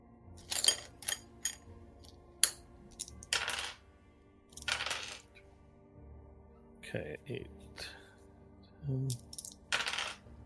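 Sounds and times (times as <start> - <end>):
dice being gathered and rolled: 0.4 - 3.8, 4.5 - 5.4, 9.1 - 10.4
speech: 6.9 - 7.9, 8.8 - 9.3.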